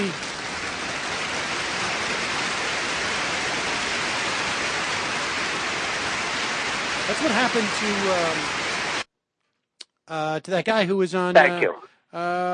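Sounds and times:
studio audience applause: 0.0 - 8.7
speech: 7.1 - 8.6, 10.1 - 12.5.

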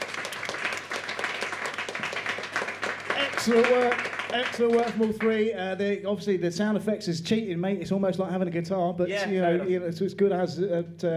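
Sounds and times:
audience applause: 0.0 - 5.5
speech: 3.4 - 11.1.

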